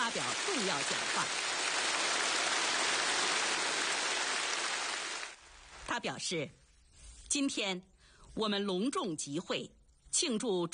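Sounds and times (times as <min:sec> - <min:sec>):
warm applause from the whole audience: 0:00.0 - 0:05.4
speech: 0:00.1 - 0:01.5, 0:06.0 - 0:06.6, 0:07.3 - 0:10.7.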